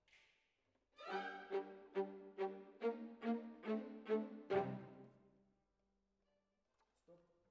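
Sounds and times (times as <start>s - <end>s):
violas: 1.0s - 5.1s.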